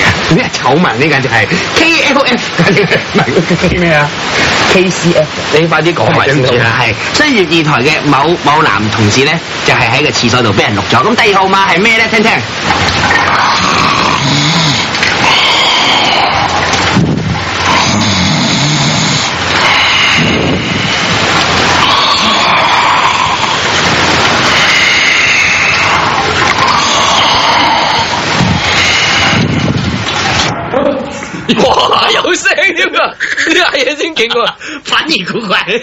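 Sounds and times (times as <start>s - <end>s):
running water hiss: 0.0s - 35.8s
speech: 0.3s - 13.6s, 31.5s - 35.8s
loud rough snoring: 13.3s - 16.6s, 17.6s - 20.8s, 24.6s - 29.6s.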